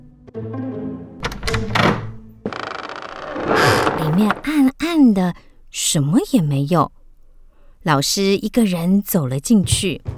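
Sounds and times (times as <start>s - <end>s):
latch clicking: 1.2s - 4.7s
steady rattling flutter: 1.2s - 4.7s
wooden door creaking open: 1.2s - 4.8s
speech: 4.2s - 7.0s, 7.8s - 10.1s.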